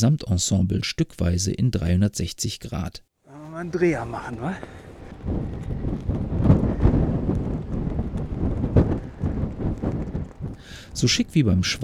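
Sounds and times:
speech: 0.0 - 6.5, 10.9 - 11.8
fabric hood flapping in gusty wind at the top of a climb: 3.6 - 11.8.

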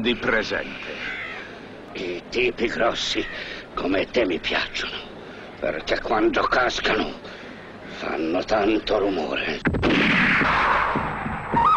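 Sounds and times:
speech: 0.0 - 1.1, 2.0 - 7.4, 8.0 - 10.8
gunshots in a western film: 9.7 - 11.6.

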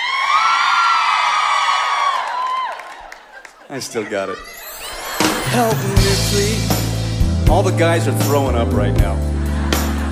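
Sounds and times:
crowd of women screaming and cheering: 0.0 - 3.7, 4.3 - 6.1
laughter: 3.0 - 6.5, 9.0 - 10.0
speech: 3.7 - 4.6, 5.5 - 6.8, 7.5 - 9.3.

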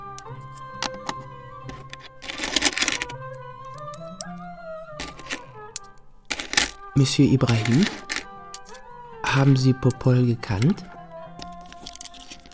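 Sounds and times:
coins being rolled into wrappers: 0.8 - 3.2, 5.0 - 5.4, 6.3 - 8.7, 11.5 - 12.5
speech: 7.0 - 8.0, 9.4 - 10.9.

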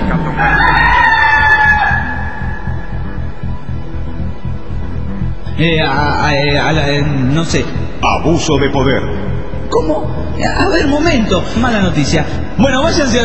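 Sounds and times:
low rumble: 0.0 - 12.7
rooster crowing: 0.2 - 2.9
speech: 5.6 - 13.2.

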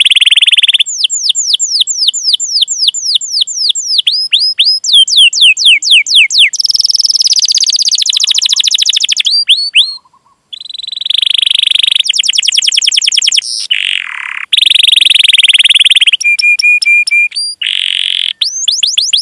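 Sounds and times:
canary song: 0.0 - 19.2.

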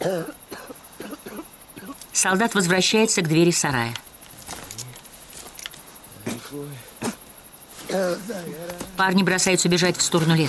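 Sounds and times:
person faking a loud raspy cough: 0.0 - 2.0, 7.9 - 8.3
speech: 2.2 - 4.0, 7.9 - 10.4.

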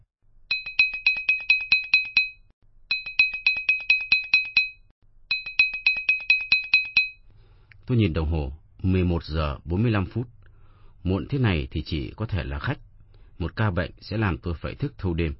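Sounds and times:
electric doorbell ringing late at night: 0.5 - 7.2
speech: 7.9 - 10.4, 11.0 - 12.8, 13.4 - 15.3.

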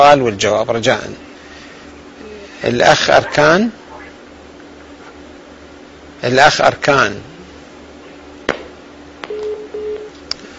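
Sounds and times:
speech: 0.0 - 1.3, 2.6 - 3.8, 6.2 - 7.3
low-pitched telephone disconnect tone beeps: 9.3 - 10.1
telephone line click as a call is cut off: 9.3 - 10.2.

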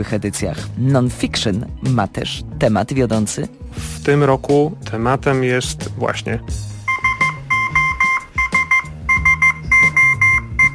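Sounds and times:
speech: 0.0 - 6.7
international distress signal: 6.9 - 10.7.

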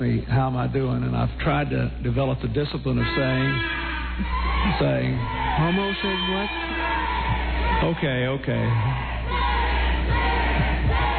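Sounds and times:
speech: 0.0 - 6.7, 7.8 - 9.4
crowd of protesters yelling and chanting: 4.1 - 11.1.

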